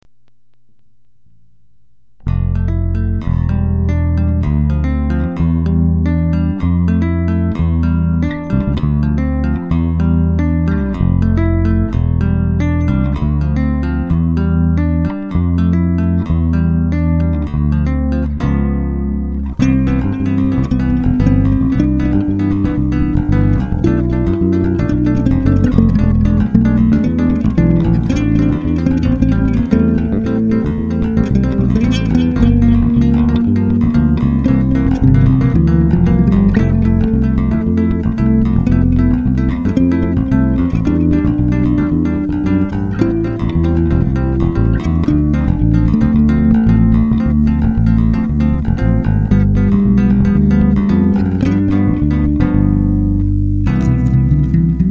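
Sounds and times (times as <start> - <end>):
two-five chord progression: 2.2 - 54.9.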